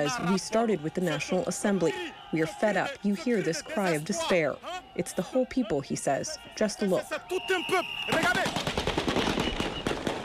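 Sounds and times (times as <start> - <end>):
speech: 0.0 - 8.7
gunfire from vehicles firing in the air: 8.1 - 10.2.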